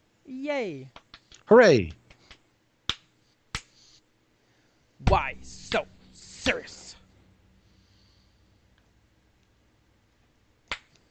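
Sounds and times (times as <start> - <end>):
speech: 0.3 - 2.0, 5.0 - 6.8
Joker clapping in his cell: 0.9 - 3.7, 10.7 - 11.0.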